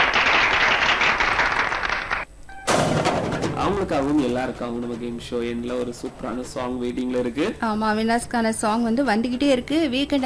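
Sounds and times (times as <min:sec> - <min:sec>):
applause: 0:00.0 - 0:02.3
speech: 0:03.7 - 0:10.2.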